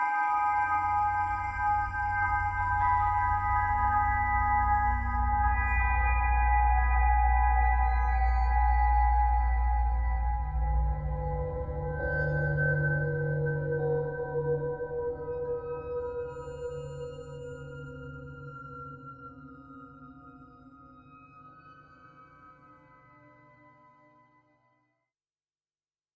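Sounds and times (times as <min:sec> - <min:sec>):
mysterious ominous atmosphere: 0:00.2 - 0:19.2.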